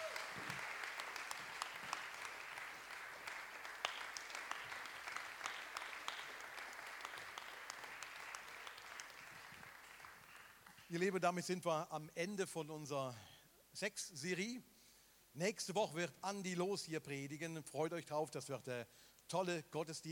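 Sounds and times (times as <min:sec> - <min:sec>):
audience applause: 0:00.0 - 0:10.9
speech: 0:10.9 - 0:14.7, 0:15.4 - 0:20.1.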